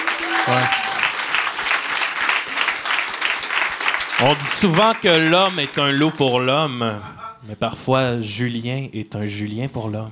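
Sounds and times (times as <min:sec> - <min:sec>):
audience applause: 0:00.0 - 0:06.7
speech: 0:00.4 - 0:00.8, 0:04.2 - 0:10.1.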